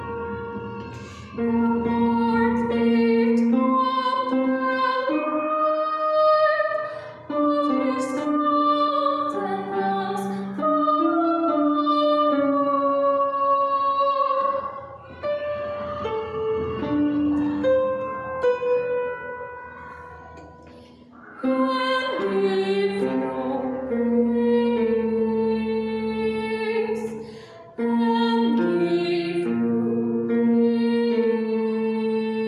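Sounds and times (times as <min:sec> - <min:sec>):
tenor singing: 0:00.0 - 0:32.4.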